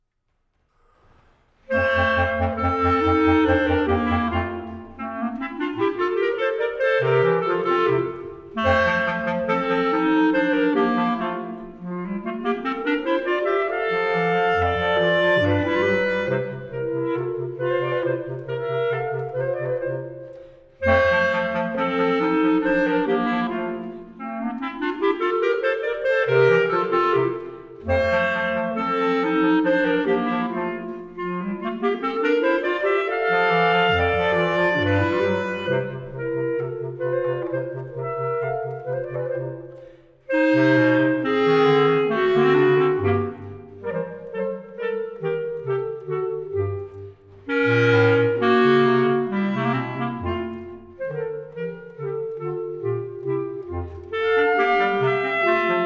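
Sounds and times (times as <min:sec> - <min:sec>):
clarinet trio playing: 0:01.6 - 0:55.8.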